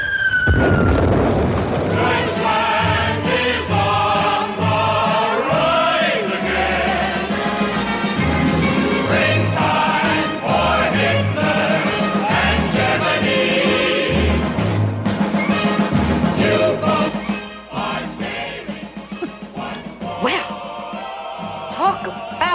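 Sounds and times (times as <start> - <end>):
loud sustained orchestral music: 0.0 - 22.5
bombs exploding in a stage musical scene: 0.4 - 3.3.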